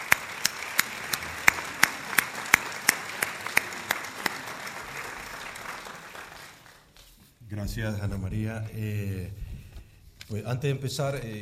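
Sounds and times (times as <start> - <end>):
audience applause: 0.0 - 7.0
speech: 7.5 - 9.4, 10.3 - 11.4.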